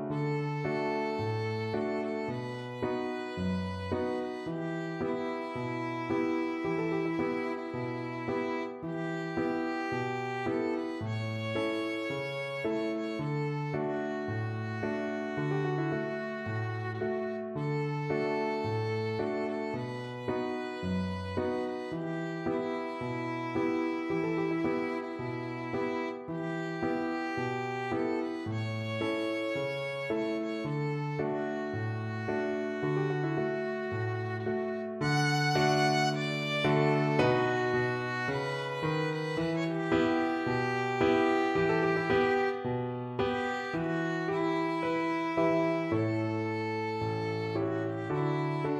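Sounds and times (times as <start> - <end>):
violin playing fado: 0.1 - 48.7.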